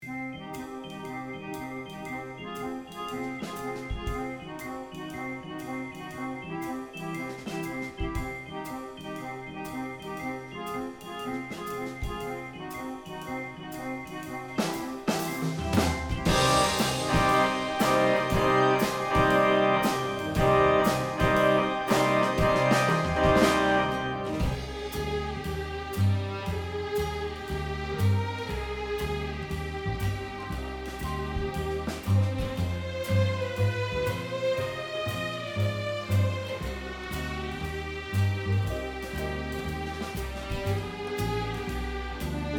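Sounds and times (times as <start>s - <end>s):
organ playing: 0.0s - 42.5s.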